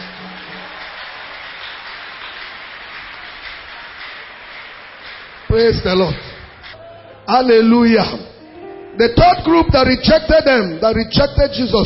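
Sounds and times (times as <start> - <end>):
audience clapping hands: 0.0 - 6.8
speech: 5.5 - 6.3, 7.3 - 8.3, 9.0 - 11.8.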